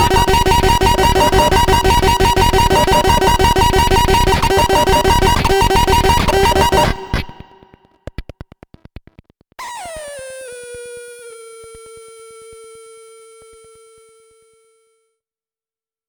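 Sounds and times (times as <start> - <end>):
drum cluster: 0.0 - 8.4.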